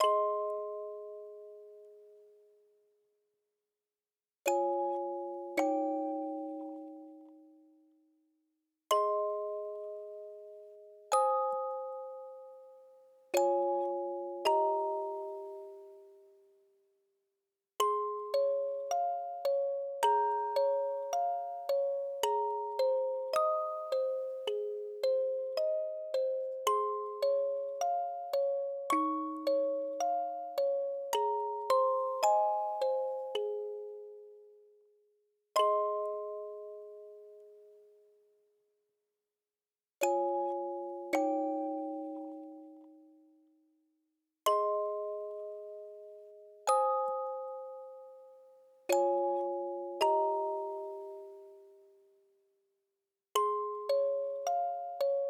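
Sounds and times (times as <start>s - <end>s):
music box: 0.0s - 2.8s, 4.4s - 8.0s, 8.9s - 16.8s, 17.8s - 38.4s, 40.0s - 43.5s, 44.5s - 52.4s, 53.4s - 55.2s.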